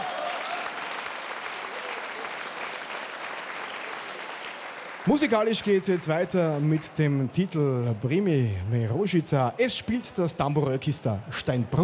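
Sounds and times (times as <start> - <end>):
applause: 0.0 - 8.0
speech: 5.0 - 11.8.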